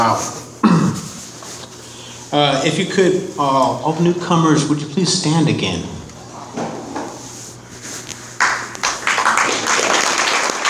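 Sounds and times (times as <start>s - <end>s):
speech: 0.0s - 0.4s, 2.3s - 6.0s
audience applause: 8.4s - 10.6s.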